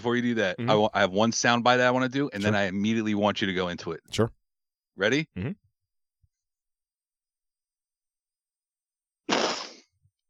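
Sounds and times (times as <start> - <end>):
speech: 0.0 - 4.4, 5.0 - 5.6
snort: 9.3 - 9.9.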